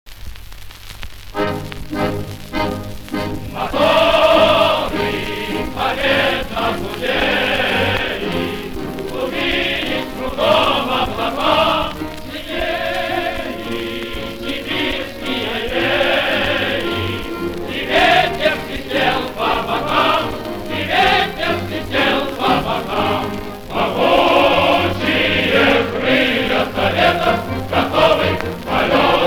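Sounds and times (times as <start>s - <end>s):
heroic flight music: 1.4s - 29.2s.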